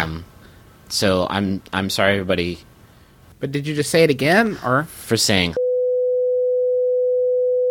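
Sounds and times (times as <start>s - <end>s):
speech: 0.9s - 2.7s, 3.4s - 5.6s
long censor bleep tone: 5.6s - 7.6s.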